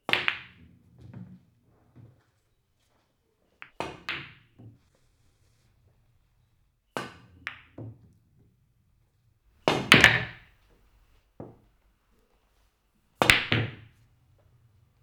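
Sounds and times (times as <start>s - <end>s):
billiard pool shots: 9.6s - 10.5s, 13.2s - 13.7s.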